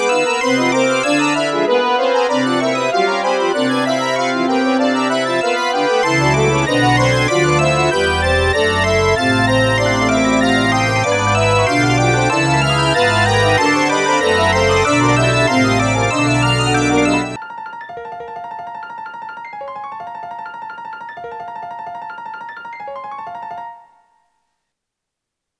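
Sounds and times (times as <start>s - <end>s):
fugue: 0.0s - 17.4s.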